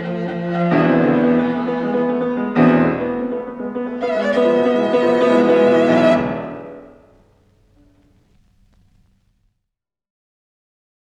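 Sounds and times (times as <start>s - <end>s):
violin: 0.0s - 8.3s
piano: 0.0s - 9.1s.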